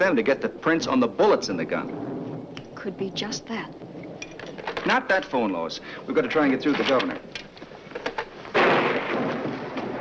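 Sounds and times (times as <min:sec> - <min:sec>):
speech: 0:00.0 - 0:02.1, 0:02.8 - 0:03.8, 0:04.8 - 0:07.4
faint crackles: 0:00.0 - 0:09.9
thunder from a storm: 0:00.0 - 0:09.9.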